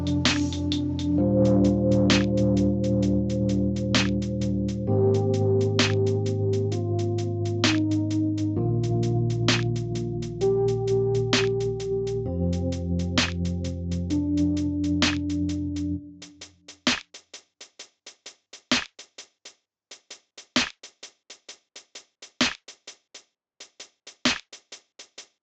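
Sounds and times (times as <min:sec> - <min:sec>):
lo-fi music: 0:00.0 - 0:16.4.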